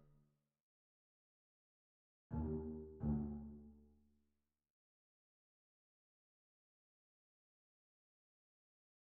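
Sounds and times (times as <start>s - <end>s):
very slow string bass: 2.3s - 3.7s.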